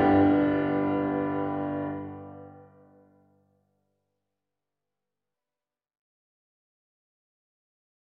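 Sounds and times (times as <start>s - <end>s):
piano: 0.0s - 3.2s.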